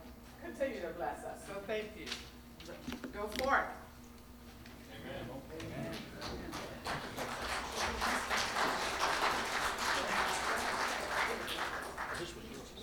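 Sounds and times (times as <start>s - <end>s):
speech: 0.6s - 3.8s
audience applause: 6.2s - 12.7s.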